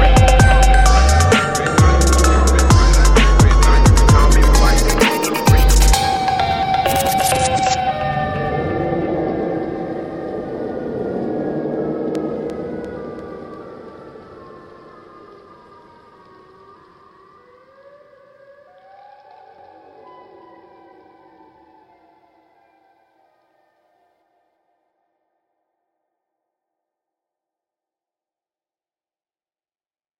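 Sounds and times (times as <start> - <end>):
phonk music: 0.0 - 9.2.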